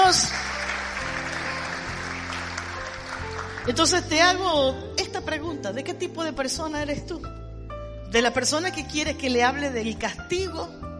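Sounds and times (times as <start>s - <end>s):
church congregation applauding in praise: 0.0s - 4.0s
speech: 3.7s - 7.4s, 8.1s - 10.8s.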